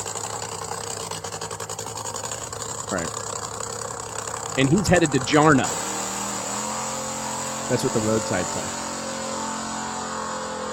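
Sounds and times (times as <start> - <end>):
race car engine droning: 0.0 - 10.7
race car tires rolling over rumble strips: 0.0 - 10.7
speech: 2.9 - 3.2, 4.6 - 5.8, 7.7 - 8.8.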